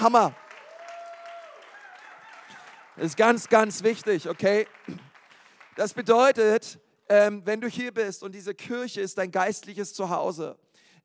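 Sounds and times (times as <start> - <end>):
speech: 0.0 - 0.4, 3.0 - 5.0, 5.8 - 10.6
audience applause: 0.0 - 6.3.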